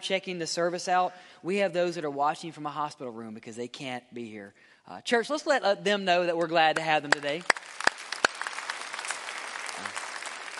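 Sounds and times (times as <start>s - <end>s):
speech: 0.0s - 7.8s
crowd clapping: 6.8s - 10.5s.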